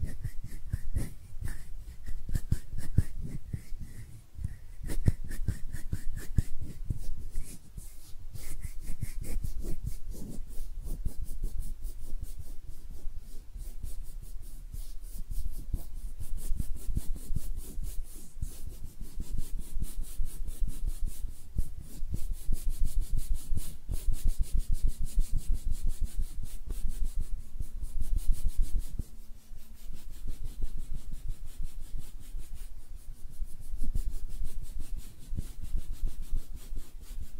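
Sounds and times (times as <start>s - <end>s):
hands rubbing and brushing against a surface: 0.0s - 37.3s.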